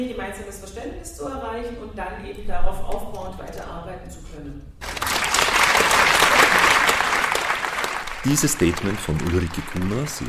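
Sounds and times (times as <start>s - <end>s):
speech: 0.0s - 5.3s, 8.2s - 10.2s
audience applause: 4.8s - 10.2s.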